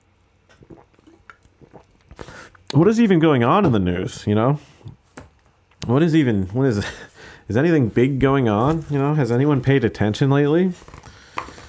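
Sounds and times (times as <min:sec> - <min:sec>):
person sipping root beer: 0:00.4 - 0:02.8, 0:10.8 - 0:11.6
speech: 0:02.7 - 0:04.7, 0:05.9 - 0:11.0.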